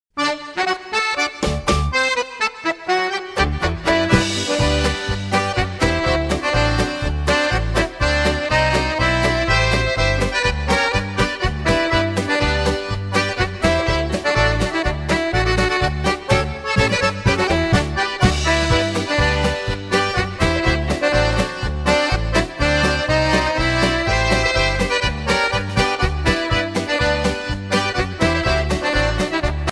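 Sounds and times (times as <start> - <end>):
polka music: 0.1 - 29.7.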